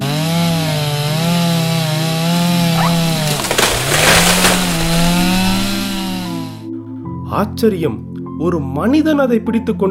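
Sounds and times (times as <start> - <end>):
chainsaw engine drone: 0.0 - 6.5
speech: 7.4 - 9.8.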